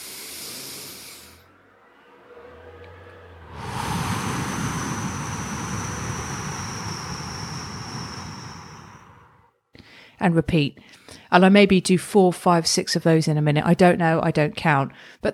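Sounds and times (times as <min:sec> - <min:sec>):
slow deep breathing, inhale and exhale: 0:00.0 - 0:01.6, 0:03.3 - 0:10.2
speech: 0:10.2 - 0:15.3.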